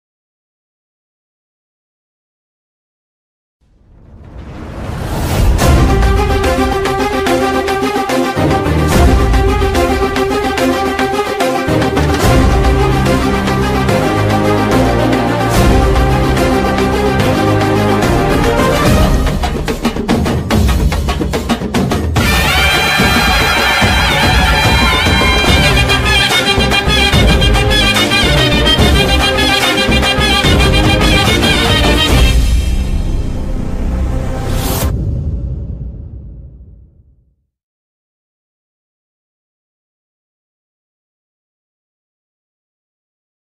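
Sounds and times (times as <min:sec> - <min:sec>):
background theme music: 0:04.0 - 0:35.4.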